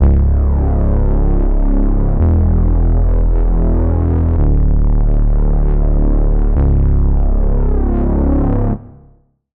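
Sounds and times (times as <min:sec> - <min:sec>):
Reese bass: 0:00.0 - 0:08.7.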